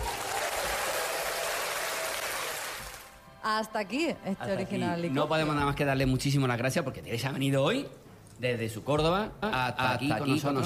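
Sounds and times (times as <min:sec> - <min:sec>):
standing ovation applause: 0:00.0 - 0:03.2
speech: 0:03.5 - 0:10.6.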